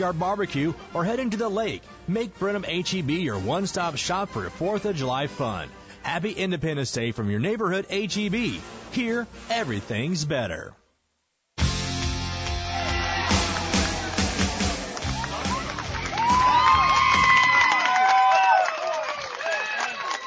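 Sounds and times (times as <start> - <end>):
speech: 0.0 - 10.8
crowd clapping at baseball game: 12.4 - 20.2.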